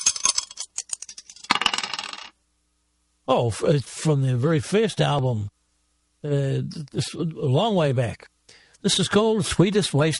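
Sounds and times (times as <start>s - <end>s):
dice being thrown and rolling: 0.0s - 2.3s
speech: 3.3s - 5.6s, 6.2s - 10.1s.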